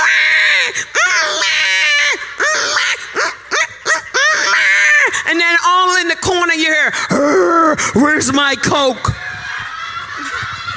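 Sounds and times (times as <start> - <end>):
voice imitating babies crying: 0.0 - 5.6, 7.1 - 8.2
laughter: 1.1 - 5.2, 9.1 - 10.7
speech: 6.6 - 9.2.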